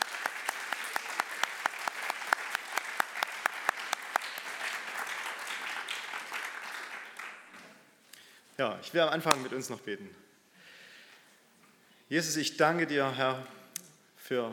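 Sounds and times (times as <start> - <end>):
audience applause: 0.0 - 7.6
speech: 8.6 - 10.3, 12.1 - 13.6, 14.3 - 14.5.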